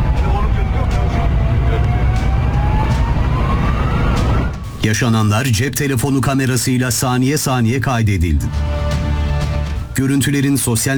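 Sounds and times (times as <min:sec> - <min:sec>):
traffic noise: 0:00.0 - 0:05.2
fire engine siren wailing on a road: 0:00.0 - 0:06.1
speech: 0:04.9 - 0:08.8, 0:10.0 - 0:10.9.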